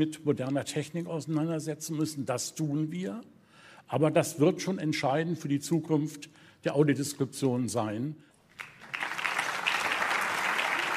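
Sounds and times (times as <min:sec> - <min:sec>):
speech: 0:00.0 - 0:08.7
audience applause: 0:08.6 - 0:10.9.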